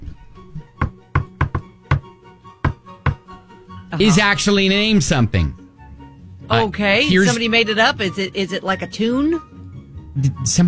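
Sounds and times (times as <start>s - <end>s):
rhythmic knocking on a hard surface: 0.8s - 3.3s
speech: 4.0s - 5.6s, 6.5s - 9.5s, 10.2s - 10.6s.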